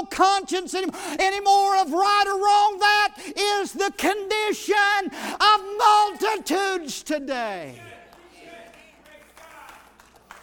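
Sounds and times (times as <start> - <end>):
speech: 0.2 - 8.0
crowd hand claps: 8.0 - 10.4.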